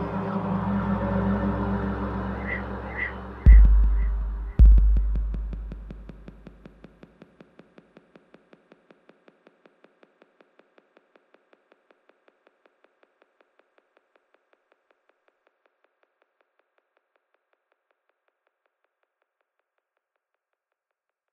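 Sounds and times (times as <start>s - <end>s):
icy whale calls: 0.0s - 5.1s.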